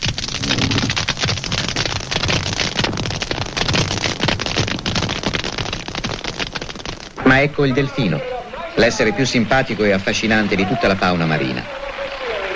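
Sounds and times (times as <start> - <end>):
colony of crustaceans clicking their claws: 0.0 - 7.2
speech: 7.3 - 11.8.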